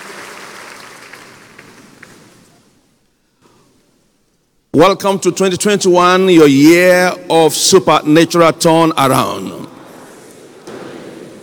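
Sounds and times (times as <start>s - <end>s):
congregation applauding at a church prayer service: 0.0s - 2.6s
speech: 4.8s - 9.6s.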